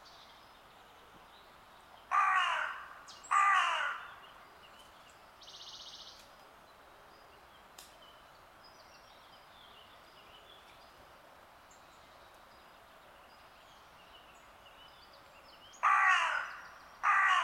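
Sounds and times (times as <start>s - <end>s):
Corvus corone carrion crow harsh cawing: 2.1s - 4.2s, 15.8s - 17.4s.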